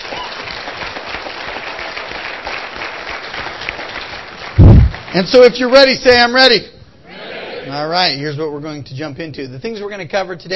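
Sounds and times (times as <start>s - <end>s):
audience applause: 0.0s - 5.2s
speech: 5.2s - 6.7s, 7.7s - 10.5s.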